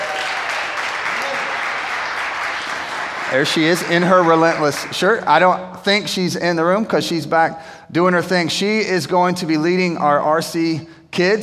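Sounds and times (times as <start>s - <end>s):
audience clapping: 0.0s - 5.5s
speech: 3.3s - 11.4s.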